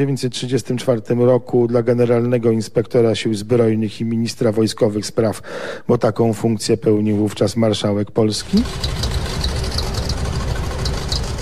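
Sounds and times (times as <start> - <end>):
speech: 0.0 - 9.2
vintage Cadillac engine idling: 8.4 - 11.4.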